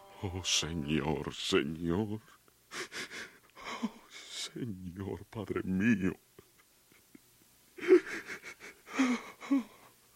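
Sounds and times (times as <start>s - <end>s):
speech: 0.2s - 2.9s, 3.8s - 6.3s
man sobbing and weeping: 2.7s - 4.6s, 7.8s - 9.9s.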